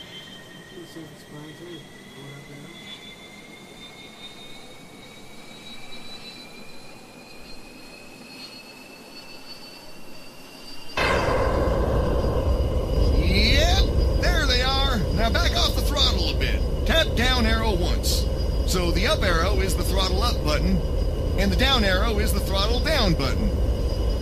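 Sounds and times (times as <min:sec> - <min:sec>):
jet aircraft afterburners engaging: 0:11.0 - 0:24.1.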